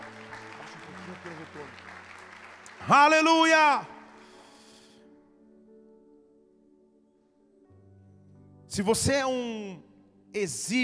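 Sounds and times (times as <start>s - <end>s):
crowd applauding: 0.0s - 4.9s
speech: 2.8s - 3.9s, 8.8s - 10.8s.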